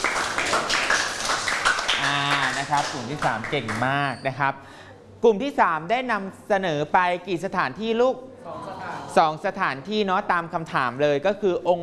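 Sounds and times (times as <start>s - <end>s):
class clapping for a group: 0.0s - 4.0s
speech: 2.7s - 11.8s.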